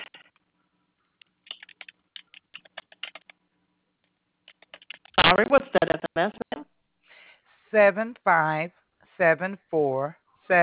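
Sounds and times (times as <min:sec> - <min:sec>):
typing on a computer keyboard: 0:01.4 - 0:03.4, 0:04.5 - 0:05.2
speech: 0:05.3 - 0:06.4, 0:07.7 - 0:10.6.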